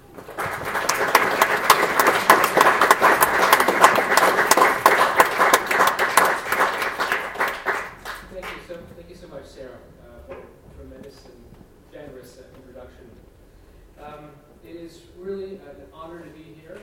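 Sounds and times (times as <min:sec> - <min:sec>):
audience applause welcoming an author at a book talk: 0:00.0 - 0:08.6.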